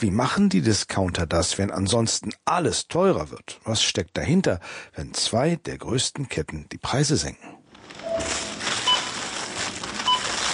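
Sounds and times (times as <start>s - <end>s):
speech: 0.0s - 8.4s
supermarket checkout register beeping in a Lidl store in Ismaning: 8.0s - 10.5s.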